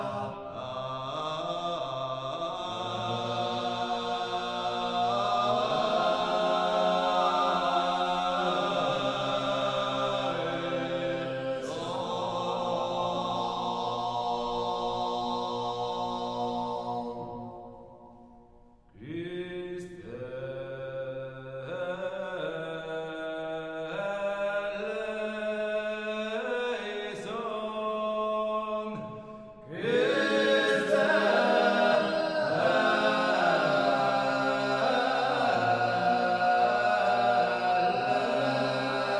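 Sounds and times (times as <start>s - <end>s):
Corsican choir chanting a kyrie in organum: 0.0s - 18.2s, 21.6s - 39.1s.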